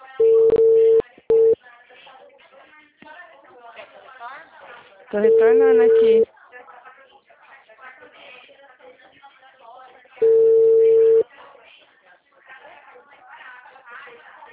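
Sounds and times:
steady high-pitched telephone tone after a call is hung up: 0:00.2 - 0:01.6, 0:05.2 - 0:06.2, 0:10.2 - 0:11.2
speech: 0:05.1 - 0:06.3.

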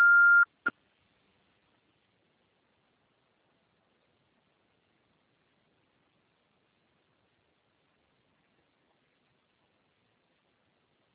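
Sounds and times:
voicemail beep: 0:00.0 - 0:00.6.

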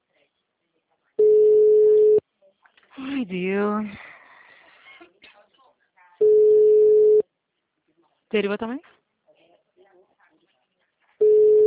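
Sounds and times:
telephone line tone of an unanswered call before voicemail: 0:01.2 - 0:02.2, 0:06.2 - 0:07.2, 0:11.2 - 0:11.6
speech: 0:03.2 - 0:04.1, 0:08.3 - 0:09.0.

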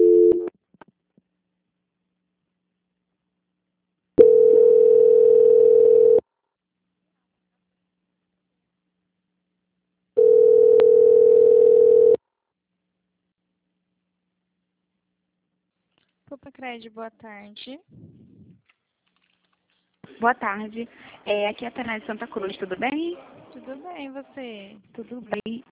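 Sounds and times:
telephone line tone while a call is transferred: 0:00.0 - 0:00.5, 0:04.2 - 0:06.2, 0:10.2 - 0:12.2
speech: 0:16.7 - 0:18.2, 0:20.2 - 0:25.7.

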